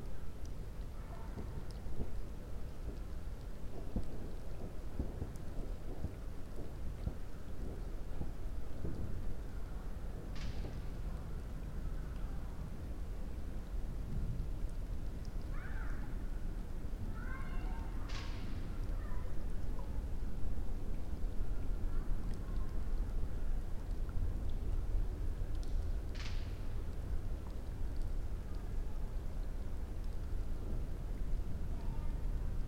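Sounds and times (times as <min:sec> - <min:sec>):
campfire crackling: 0:00.0 - 0:32.6
raindrops: 0:00.0 - 0:32.6
child: 0:00.9 - 0:01.8, 0:17.0 - 0:20.1, 0:21.7 - 0:22.9, 0:31.6 - 0:32.6
fireworks: 0:03.8 - 0:09.2.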